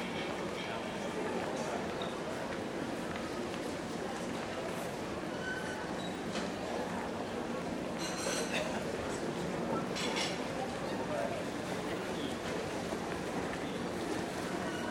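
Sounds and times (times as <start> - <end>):
airport ambience in Denmark: 0.0 - 14.8.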